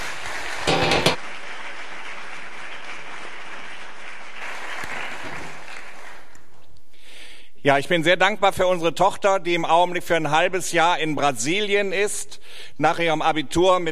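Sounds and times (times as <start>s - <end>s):
audience applause: 0.0s - 6.4s
speech: 7.6s - 13.9s.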